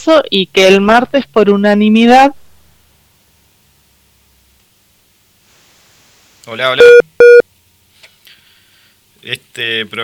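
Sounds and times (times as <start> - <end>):
speech: 0.0 - 2.4, 6.4 - 7.1, 9.2 - 10.0
telephone busy tone beep of a call cut off by a poor signal: 6.8 - 7.4.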